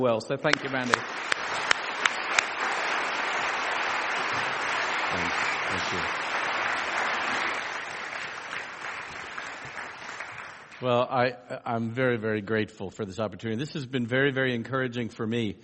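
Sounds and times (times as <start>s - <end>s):
speech: 0.0s - 1.6s, 5.1s - 6.2s, 10.8s - 15.6s
audience applause: 0.5s - 10.9s.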